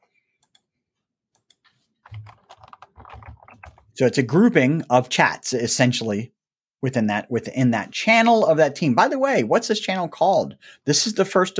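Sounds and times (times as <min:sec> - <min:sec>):
keystrokes on a computer keyboard: 0:01.4 - 0:03.9
speech: 0:04.0 - 0:11.5.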